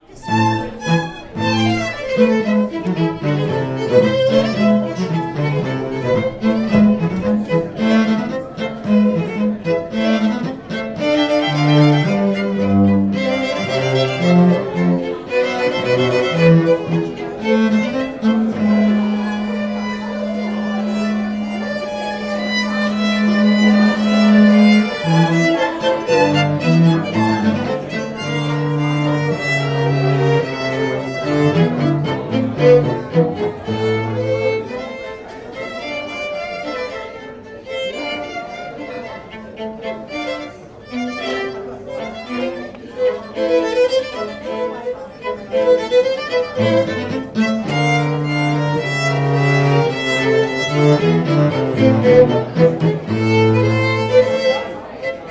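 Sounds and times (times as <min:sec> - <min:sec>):
double violin concerto in A minor: 0:00.0 - 0:55.2.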